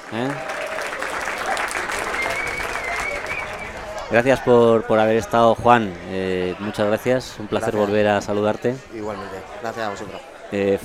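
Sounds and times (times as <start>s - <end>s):
audience applause: 0.0s - 5.3s
faint crowd murmur: 0.0s - 10.8s
speech: 0.1s - 0.5s, 4.1s - 10.8s.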